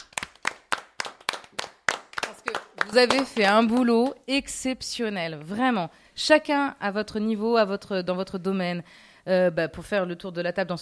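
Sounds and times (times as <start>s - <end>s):
small group of people clapping: 0.0s - 4.2s
speech: 2.9s - 10.7s.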